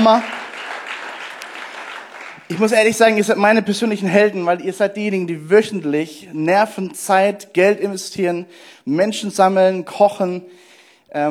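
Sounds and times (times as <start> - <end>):
speech: 0.0 - 0.3, 2.5 - 11.3
audience applause: 0.0 - 2.8.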